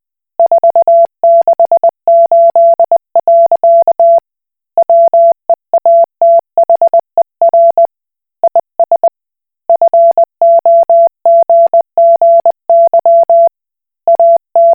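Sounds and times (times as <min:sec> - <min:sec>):
Koch Morse code beeps: 0:00.4 - 0:04.2, 0:04.8 - 0:07.9, 0:09.7 - 0:13.5, 0:14.1 - 0:14.7.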